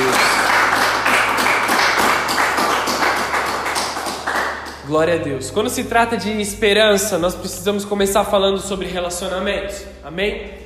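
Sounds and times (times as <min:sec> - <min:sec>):
audience applause: 0:00.0 - 0:04.8
speech: 0:04.9 - 0:10.6.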